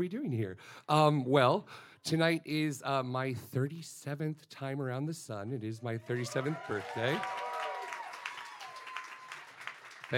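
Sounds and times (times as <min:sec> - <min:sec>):
speech: 0:00.0 - 0:07.5
audience applause: 0:06.1 - 0:10.1.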